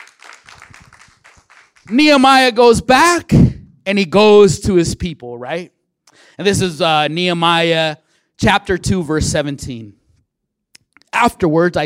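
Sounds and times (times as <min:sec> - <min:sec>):
audience applause: 0:00.0 - 0:02.1
speech: 0:01.9 - 0:05.8, 0:06.4 - 0:10.0, 0:11.1 - 0:11.8.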